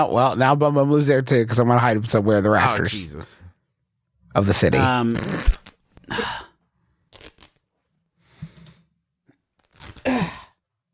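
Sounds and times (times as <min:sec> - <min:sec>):
speech: 0:00.0 - 0:03.5, 0:04.4 - 0:06.4
shirt being ripped open: 0:04.7 - 0:06.1, 0:07.1 - 0:07.7, 0:09.6 - 0:10.3.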